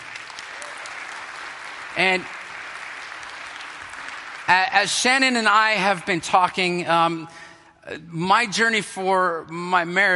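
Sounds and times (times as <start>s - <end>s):
audience applause: 0.0s - 5.6s
speech: 2.0s - 2.4s, 4.5s - 10.1s.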